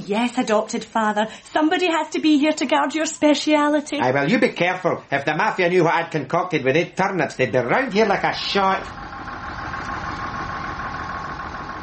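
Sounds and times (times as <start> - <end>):
speech: 0.1 - 9.0
bus engine idling: 8.2 - 11.8.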